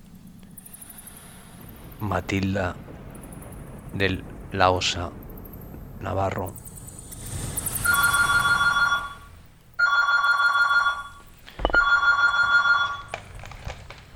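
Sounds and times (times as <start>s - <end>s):
speech: 2.0s - 2.8s, 3.9s - 5.2s, 6.0s - 6.6s
telephone ringing in Benicarló, Valencia: 7.8s - 13.7s.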